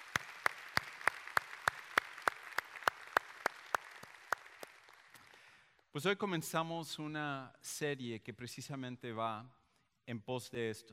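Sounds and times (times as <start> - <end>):
audience applause: 0.0 - 5.6
speech: 6.0 - 10.9.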